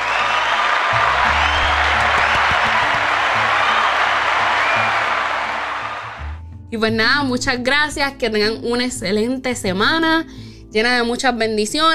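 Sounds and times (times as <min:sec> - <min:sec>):
applause: 0:00.0 - 0:06.4
speech: 0:06.7 - 0:11.9.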